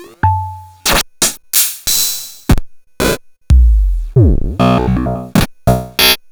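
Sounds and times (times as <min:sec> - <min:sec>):
musical hits: 0:00.3 - 0:00.9, 0:03.5 - 0:06.1.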